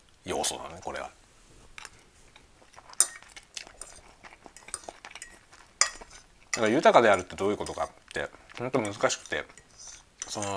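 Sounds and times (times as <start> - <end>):
speech: 0.2 - 1.2, 6.6 - 9.6, 10.3 - 10.5
faint chewing: 1.5 - 10.5
cutlery clinking on dish while eating spaghetti: 2.8 - 8.2, 8.8 - 10.5.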